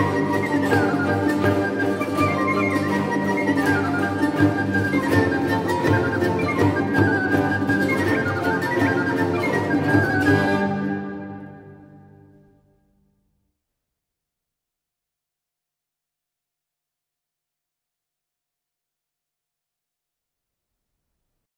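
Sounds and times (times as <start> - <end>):
Renaissance recorder ensemble: 0.0 - 12.6.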